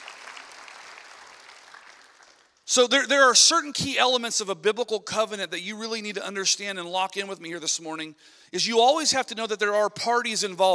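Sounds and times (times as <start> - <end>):
church congregation applauding during a sermon: 0.0 - 2.8
speech: 2.7 - 10.7.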